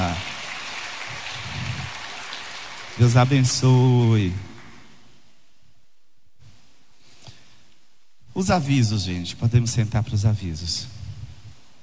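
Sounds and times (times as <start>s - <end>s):
audience applause: 0.0s - 4.9s
speech: 3.0s - 4.5s, 8.4s - 11.0s.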